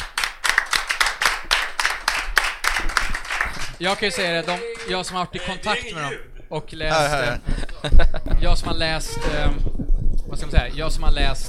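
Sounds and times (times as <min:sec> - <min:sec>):
applause, clapping hands: 0:00.0 - 0:05.3
speech: 0:03.8 - 0:11.4
laughter: 0:07.2 - 0:08.6.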